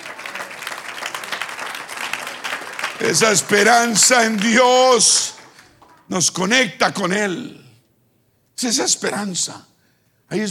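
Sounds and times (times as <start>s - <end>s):
audience applauding: 0.0s - 6.0s
speech: 3.0s - 5.4s, 6.1s - 7.6s, 8.6s - 9.7s, 10.3s - 10.4s.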